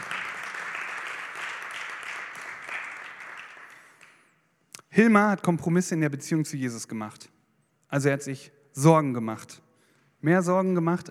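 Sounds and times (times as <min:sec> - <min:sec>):
audience applause: 0:00.0 - 0:04.2
speech: 0:05.0 - 0:09.6, 0:10.2 - 0:11.0.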